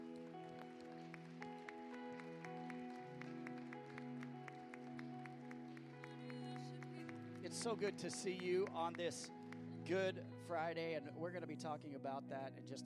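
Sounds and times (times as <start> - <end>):
audience hand clapping: 0.0 - 10.1
speech: 7.4 - 12.8.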